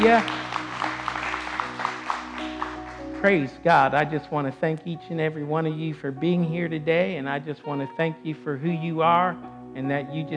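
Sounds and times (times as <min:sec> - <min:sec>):
speech: 0:00.0 - 0:00.4, 0:03.2 - 0:10.3
congregation clapping hands in praise at a church service: 0:00.0 - 0:04.2.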